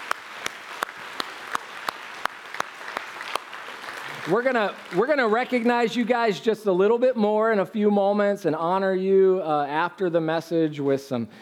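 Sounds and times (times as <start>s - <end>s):
audience applause for graduates: 0.0s - 5.9s
speech: 4.2s - 11.4s.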